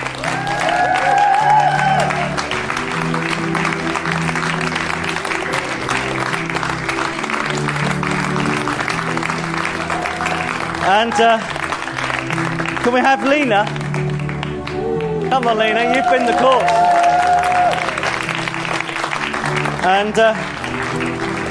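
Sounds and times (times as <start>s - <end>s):
crowd clapping: 0.0s - 21.5s
whistles and cheers: 0.2s - 2.4s, 15.7s - 18.0s
speech: 11.0s - 11.5s, 12.8s - 13.8s, 15.3s - 16.8s, 19.8s - 20.6s.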